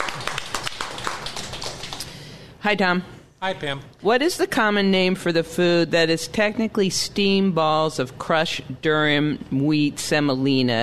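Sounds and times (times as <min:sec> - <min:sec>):
applause: 0:00.0 - 0:02.2
speech: 0:02.6 - 0:10.8.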